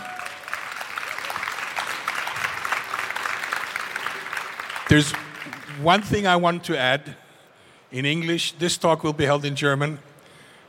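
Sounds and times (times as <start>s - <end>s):
audience applause: 0.0s - 6.0s
speech: 4.9s - 5.2s, 5.8s - 7.2s, 7.9s - 10.1s.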